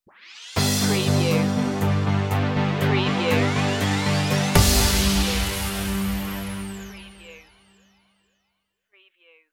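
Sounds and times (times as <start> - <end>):
musical stinger: 0.6 - 7.8.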